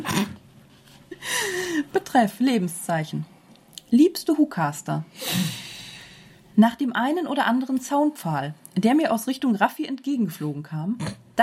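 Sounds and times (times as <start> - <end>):
harsh breathy throat clearing: 0.0 - 0.4, 11.0 - 11.2
speech: 2.1 - 3.3, 3.9 - 5.6, 6.6 - 11.4.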